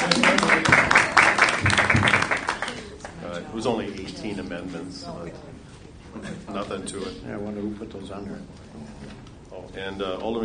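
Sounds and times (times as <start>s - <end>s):
round of applause from a group: 0.0s - 3.2s
speech: 3.6s - 5.6s, 6.2s - 9.1s, 9.7s - 10.4s.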